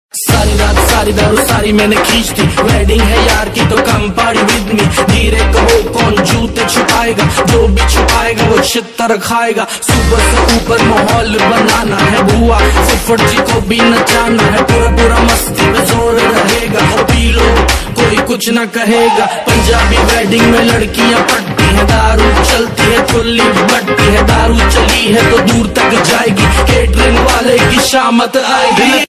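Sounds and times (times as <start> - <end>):
rap ringtone: 0.2 - 29.0.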